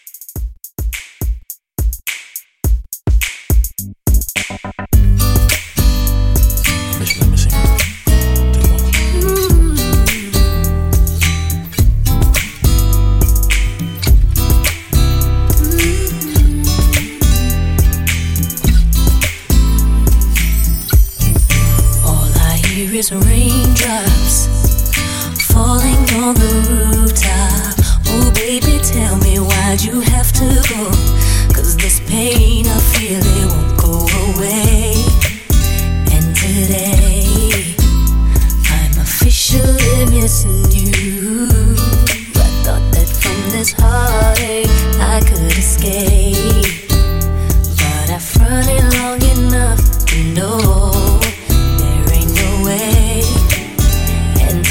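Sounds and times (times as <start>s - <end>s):
RNB drum beat at 105 BPM: 0.0s - 54.6s.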